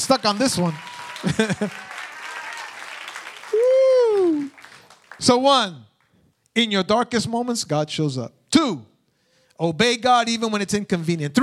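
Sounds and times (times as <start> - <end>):
speech: 0.0 - 1.9, 5.2 - 5.9, 6.6 - 8.9, 9.6 - 11.4
audience clapping: 0.0 - 6.2, 10.8 - 11.4
laughter: 1.0 - 2.4.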